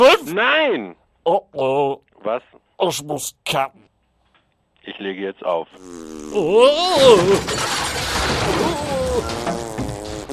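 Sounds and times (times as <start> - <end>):
speech: 0.0 - 3.9, 4.9 - 9.6
radio knocked over and crashing: 7.0 - 10.3.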